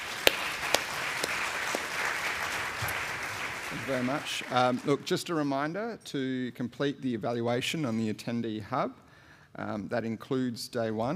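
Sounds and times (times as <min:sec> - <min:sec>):
audience applause: 0:00.0 - 0:05.1
speech: 0:03.7 - 0:11.1.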